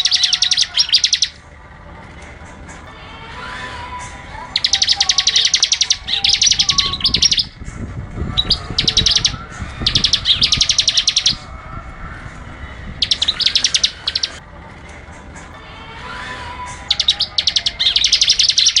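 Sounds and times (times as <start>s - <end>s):
bar-winged prinia singing rapid machine-gun trills: 0.0s - 1.5s, 4.4s - 11.6s, 12.9s - 14.4s, 16.2s - 18.7s.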